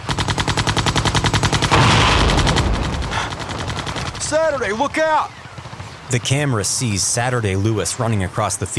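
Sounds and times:
army helicopter strafing the field: 0:00.0 - 0:06.3
speech: 0:04.4 - 0:05.4, 0:06.1 - 0:08.7.

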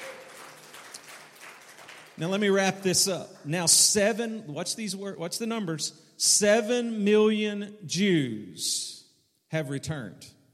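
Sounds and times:
audience clapping hands: 0:00.0 - 0:03.5
speech: 0:02.2 - 0:10.4.

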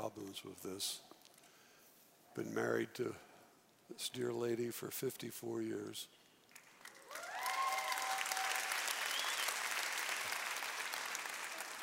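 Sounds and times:
speech: 0:00.0 - 0:01.2, 0:02.4 - 0:03.3, 0:03.9 - 0:06.2
audience applause: 0:06.5 - 0:11.8.

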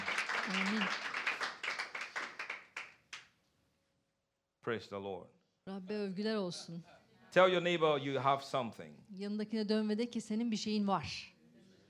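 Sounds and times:
audience clapping hands: 0:00.0 - 0:03.4
speech: 0:04.7 - 0:11.3.

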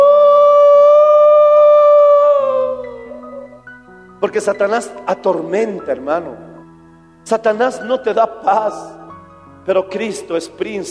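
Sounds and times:
howling in the dark night: 0:00.0 - 0:03.6
speech: 0:04.3 - 0:06.5, 0:07.2 - 0:09.0, 0:09.6 - 0:10.8.

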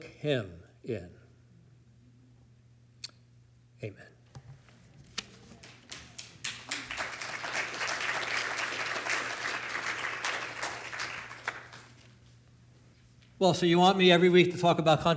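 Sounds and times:
speech: 0:00.2 - 0:01.2, 0:03.8 - 0:04.1, 0:13.4 - 0:15.1
audience applause: 0:05.6 - 0:12.2.

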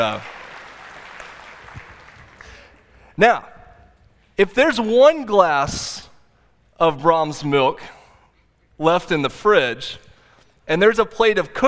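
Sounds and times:
speech: 0:00.0 - 0:00.4, 0:03.2 - 0:03.5, 0:04.4 - 0:06.1, 0:06.8 - 0:08.0, 0:08.8 - 0:10.0, 0:10.7 - 0:11.6
audience applause: 0:00.0 - 0:02.8.

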